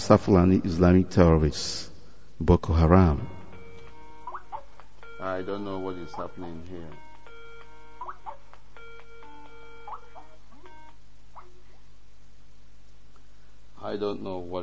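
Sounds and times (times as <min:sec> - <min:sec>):
speech: 0:00.1 - 0:03.4, 0:05.2 - 0:07.0, 0:13.8 - 0:14.6
phone ringing: 0:02.8 - 0:11.4.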